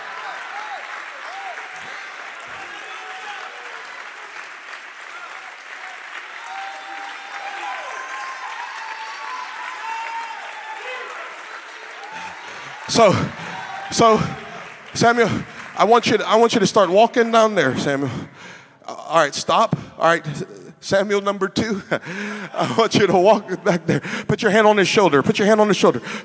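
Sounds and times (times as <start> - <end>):
church congregation clapping hands: 0.0 - 18.6
speech: 12.9 - 14.4, 15.0 - 26.2.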